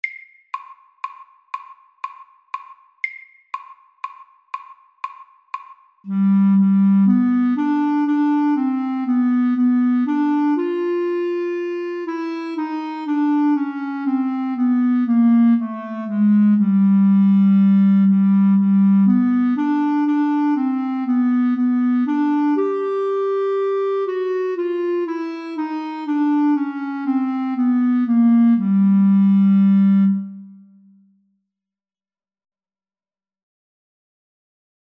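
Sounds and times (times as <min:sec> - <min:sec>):
slow chromatic etude: 0:06.1 - 0:31.0.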